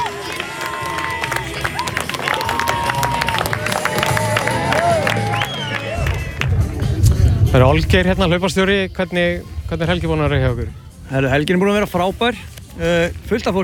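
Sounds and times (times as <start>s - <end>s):
crowd clapping at a running race finish line: 0.0s - 7.3s
crowd whistles and shouts: 4.9s - 6.4s
speech: 7.6s - 13.6s.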